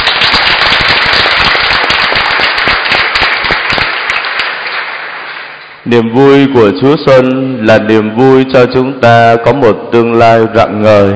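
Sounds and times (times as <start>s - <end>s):
audience applause: 0.0s - 5.7s
speech: 5.9s - 11.1s.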